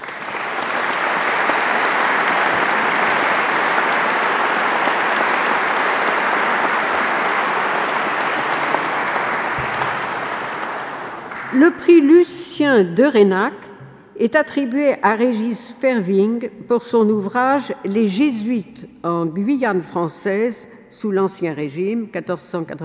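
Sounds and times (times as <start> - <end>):
audience applause: 0.0 - 11.7
speech: 11.6 - 22.8.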